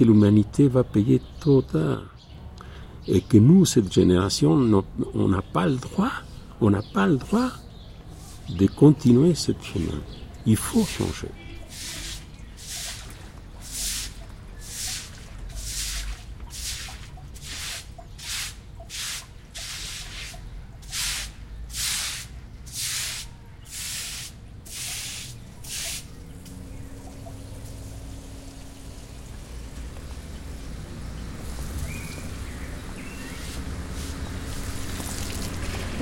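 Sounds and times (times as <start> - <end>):
speech: 0.0 - 2.1, 3.1 - 7.6, 8.5 - 11.4
water spraying from a hose watering trees: 10.7 - 36.0.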